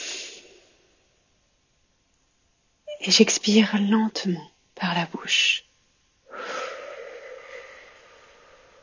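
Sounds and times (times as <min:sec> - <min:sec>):
slow inhale through the nose during a guided breathing exercise: 0:00.0 - 0:00.6, 0:06.3 - 0:08.8
speech: 0:03.0 - 0:05.7.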